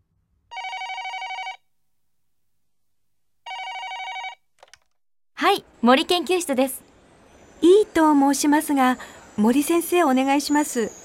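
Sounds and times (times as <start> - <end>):
telephone ringing with electronic trill: 0.5 - 1.6, 3.5 - 4.4
speech: 5.4 - 6.8, 7.6 - 11.0.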